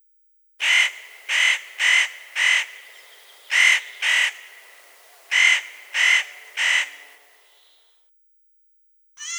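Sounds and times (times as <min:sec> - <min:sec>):
spotted nutcracker call: 0:00.6 - 0:07.8.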